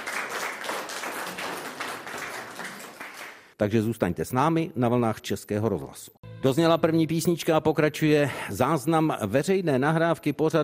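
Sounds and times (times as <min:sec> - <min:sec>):
crowd applauding: 0:00.0 - 0:03.6
speech: 0:03.6 - 0:10.6.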